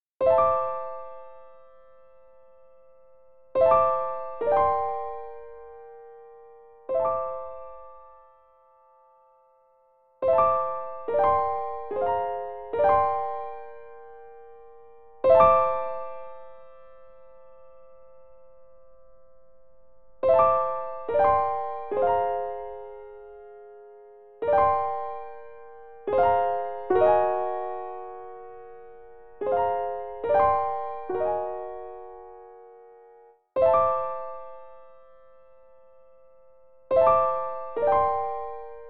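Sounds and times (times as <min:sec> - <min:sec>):
piano piece: 0:00.2 - 0:38.8.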